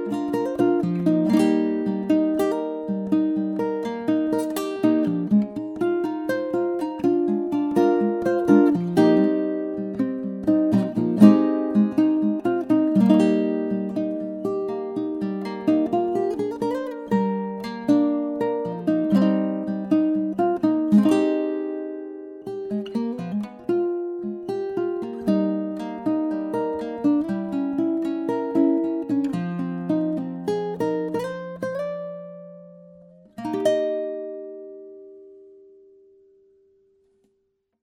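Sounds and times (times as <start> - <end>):
koa baritone ukulele: 0.0 - 36.0.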